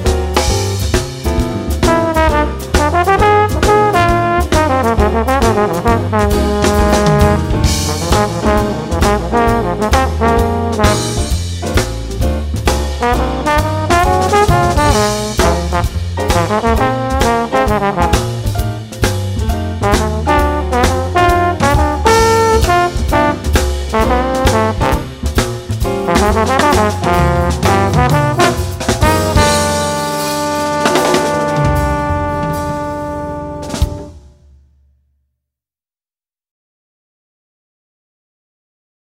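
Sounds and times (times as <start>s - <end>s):
jazz trombone blues with soloist: 0.0s - 34.4s.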